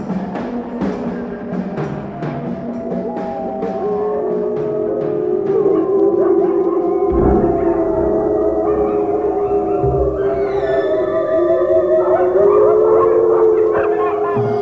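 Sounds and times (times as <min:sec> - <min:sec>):
wolves howling in chorus: 0:00.1 - 0:14.6.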